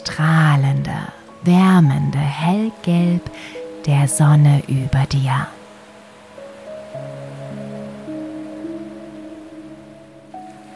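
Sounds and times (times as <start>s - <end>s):
speech: 0.0s - 5.6s
ocean waves: 0.0s - 10.7s
soft sustained musical tones: 0.0s - 10.7s.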